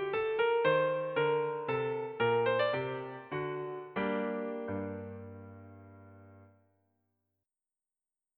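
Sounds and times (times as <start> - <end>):
minuet music: 0.0 - 6.4.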